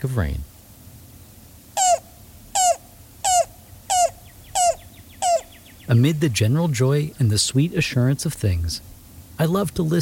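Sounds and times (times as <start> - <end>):
speech: 0.0 - 0.5, 5.9 - 10.0
faint hush: 0.0 - 10.0
cuckoo calling: 1.7 - 6.2.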